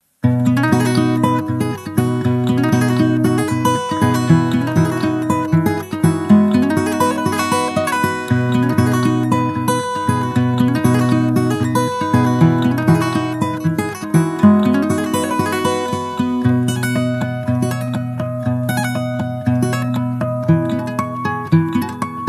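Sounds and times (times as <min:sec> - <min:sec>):
acoustic guitar ringtone: 0:00.2 - 0:22.2.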